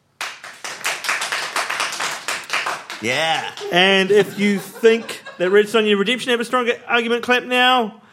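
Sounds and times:
audience clapping: 0.1s - 4.4s
laughter: 3.0s - 6.4s
speech: 3.0s - 8.0s.

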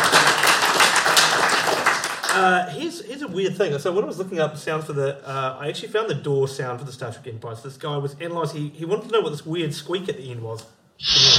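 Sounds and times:
crowd applause: 0.0s - 2.4s
speech: 2.4s - 11.3s.

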